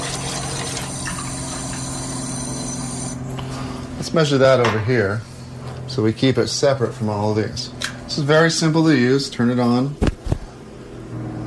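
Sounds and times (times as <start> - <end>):
tap water filling a container: 0.0 - 3.1
speech: 4.0 - 5.3, 5.9 - 10.1.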